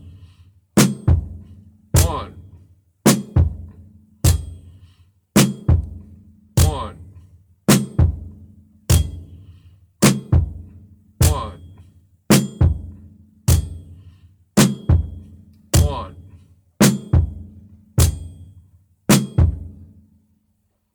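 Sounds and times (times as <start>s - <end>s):
drum beat: 0.8s - 4.7s, 5.4s - 9.4s, 10.0s - 14.0s, 14.6s - 18.5s, 19.1s - 19.8s.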